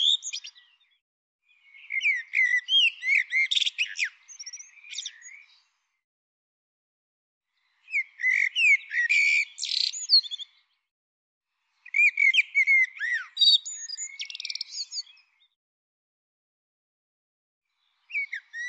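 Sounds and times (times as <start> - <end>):
bird chirping and twittering: 0.0 - 5.8, 7.6 - 10.8, 11.8 - 15.6, 17.9 - 18.6.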